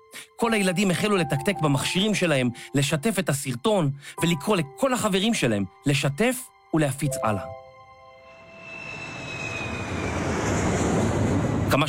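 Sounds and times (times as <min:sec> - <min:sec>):
speech: 0:00.4 - 0:07.6
airplane engine droning in flight: 0:08.2 - 0:11.8.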